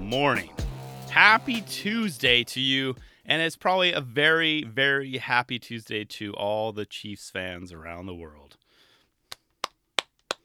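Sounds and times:
speech: 0.1s - 8.5s
quiet golf clap: 9.3s - 10.4s.

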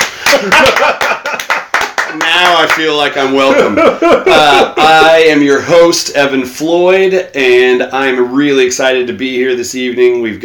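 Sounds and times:
people clapping: 0.0s - 3.5s
laughter: 0.1s - 5.7s
speech: 0.3s - 1.0s, 2.2s - 10.4s.

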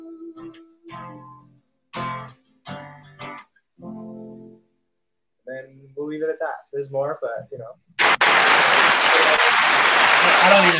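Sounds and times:
speech: 6.0s - 7.9s, 10.4s - 10.7s
audience clapping: 8.0s - 10.7s.

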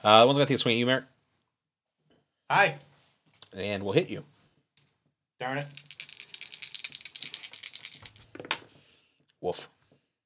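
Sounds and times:
speech: 0.0s - 1.1s, 2.5s - 2.9s, 3.5s - 4.3s, 5.4s - 5.9s, 9.4s - 9.7s
dice rattling as they are rolled: 5.6s - 8.6s.

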